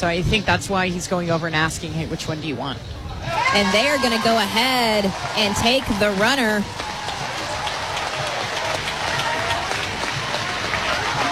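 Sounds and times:
speech: 0:00.0 - 0:06.9
baseball fans in uproar at a Sooners game: 0:03.2 - 0:11.2.

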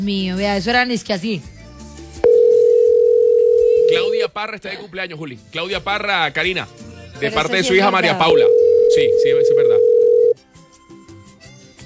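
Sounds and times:
speech: 0:00.0 - 0:01.6, 0:03.9 - 0:09.6
telephone ringing tone through a phone line: 0:02.2 - 0:04.2, 0:08.2 - 0:10.4.

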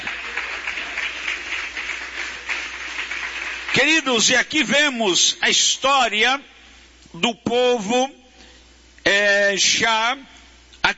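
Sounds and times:
audience applause: 0:00.0 - 0:04.0
speech: 0:03.8 - 0:06.5, 0:07.2 - 0:08.2, 0:09.1 - 0:10.3.

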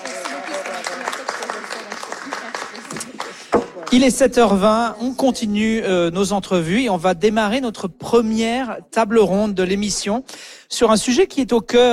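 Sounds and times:
audience applause: 0:00.0 - 0:04.1
speech: 0:03.9 - 0:11.9.

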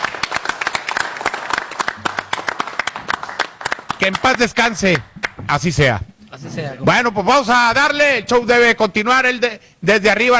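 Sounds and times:
audience applause: 0:00.0 - 0:05.4
speech: 0:04.0 - 0:10.3.

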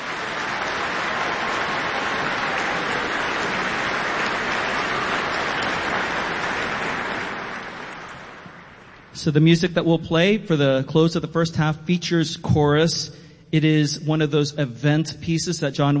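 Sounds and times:
audience applause for a choir: 0:00.0 - 0:09.1
speech: 0:09.2 - 0:15.9.

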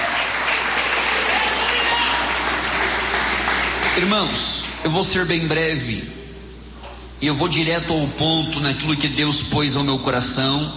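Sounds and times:
audience clapping hands: 0:00.0 - 0:04.8
speech: 0:04.0 - 0:06.2, 0:07.2 - 0:10.7.

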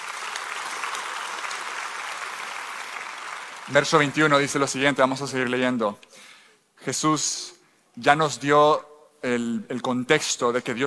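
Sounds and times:
audience applause: 0:00.0 - 0:04.6
speech: 0:03.7 - 0:06.1, 0:06.8 - 0:10.8.

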